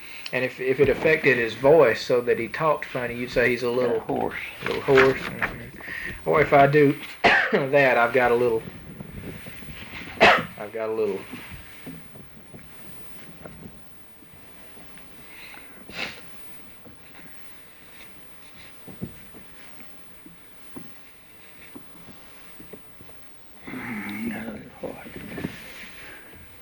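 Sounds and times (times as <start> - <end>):
speech: 0.3 - 8.8, 10.6 - 11.4
person coughing: 7.2 - 7.7, 10.2 - 10.6.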